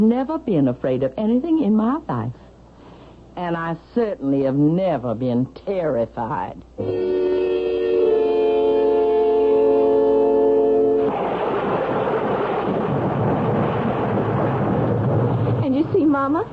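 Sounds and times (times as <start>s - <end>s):
speech: 0.0s - 2.4s, 3.4s - 7.3s
sustained chord-like tone: 6.8s - 11.1s
heavy rain: 10.7s - 16.5s
deep rolling thunder: 10.9s - 16.5s.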